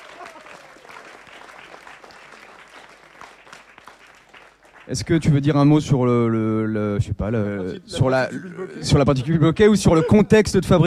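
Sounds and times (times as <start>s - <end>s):
audience applause: 0.0s - 5.2s
speech: 4.9s - 10.8s.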